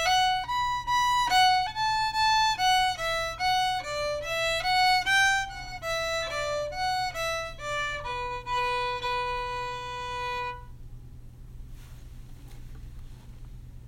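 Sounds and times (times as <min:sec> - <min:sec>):
slow folk rambles: 0:00.0 - 0:10.8.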